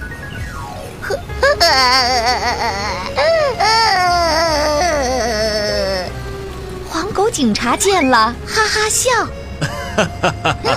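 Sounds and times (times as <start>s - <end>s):
crying and wailing: 1.0s - 6.4s
speech: 1.6s - 4.0s, 7.3s - 9.4s, 10.0s - 10.7s
laughter: 9.6s - 10.7s.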